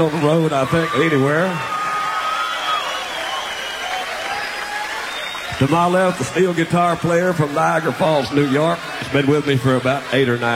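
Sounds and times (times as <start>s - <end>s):
speech: 0.0s - 1.8s, 5.6s - 10.5s
audience applause for the band: 0.0s - 10.5s.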